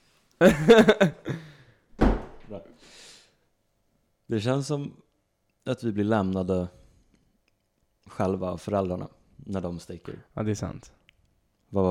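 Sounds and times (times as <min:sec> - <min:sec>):
speech: 0:00.4 - 0:01.2, 0:04.3 - 0:06.8, 0:08.1 - 0:11.0
door being closed: 0:02.0 - 0:02.6.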